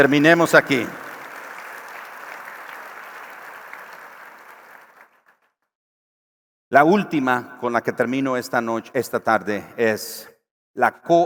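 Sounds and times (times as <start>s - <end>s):
speech: 0.0s - 1.0s, 6.7s - 11.2s
audience applause: 0.0s - 5.5s.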